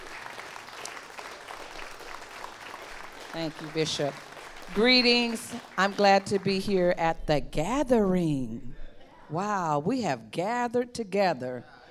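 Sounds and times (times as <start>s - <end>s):
audience clapping hands: 0.0s - 6.9s
speech: 3.3s - 11.7s.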